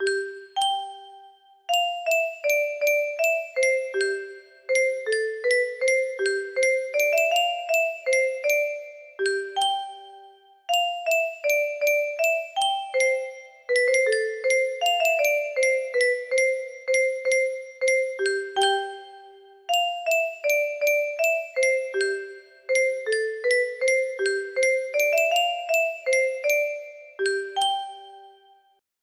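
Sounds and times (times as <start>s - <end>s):
music box: 0.0s - 28.8s.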